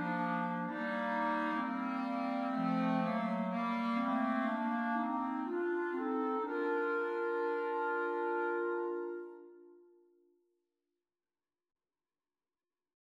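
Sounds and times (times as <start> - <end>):
clarinet trio playing: 0.0 - 9.9.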